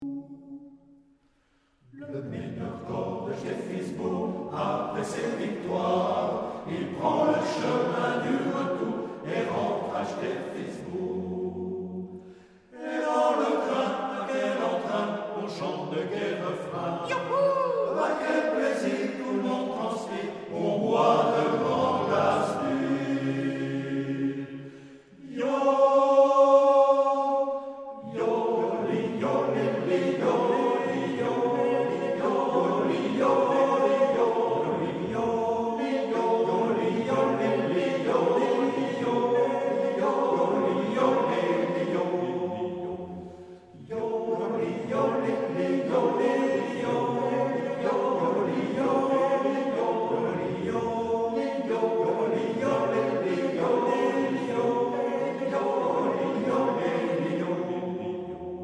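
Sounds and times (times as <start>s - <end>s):
music: 0.0s - 58.6s.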